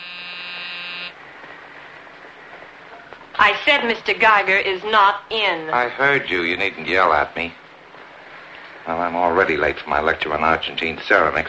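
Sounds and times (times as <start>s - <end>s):
electric door buzzer: 0.0s - 1.2s
soft hiss: 0.0s - 11.4s
speech: 3.4s - 7.6s, 8.9s - 11.4s.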